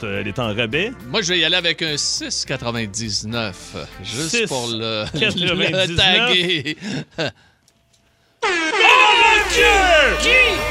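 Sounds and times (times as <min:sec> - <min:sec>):
speech: 0:00.0 - 0:07.5, 0:09.4 - 0:10.6
laughter: 0:04.8 - 0:07.4
golden buzzer sound effect horn blast: 0:08.4 - 0:10.6.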